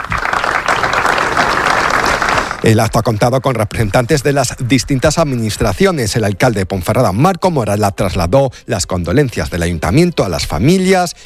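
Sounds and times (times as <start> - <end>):
applause after a minute of silence: 0.0 - 2.8
speech: 2.6 - 11.2.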